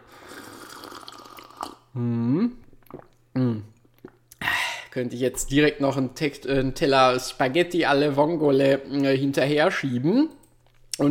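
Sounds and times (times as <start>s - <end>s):
caffeinated apple spritzer pouring into a glass: 0.2s - 1.8s
speech: 2.0s - 2.6s, 5.0s - 10.4s.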